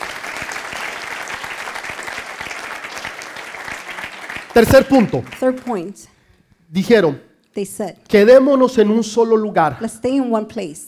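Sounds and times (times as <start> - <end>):
audience applause: 0.0 - 5.8
speech: 4.6 - 10.8.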